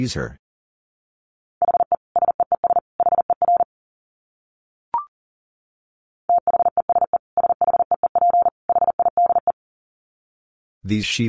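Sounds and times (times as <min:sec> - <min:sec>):
fast Morse code beeps at 40 words per minute: 0:01.6 - 0:03.7, 0:06.3 - 0:09.6.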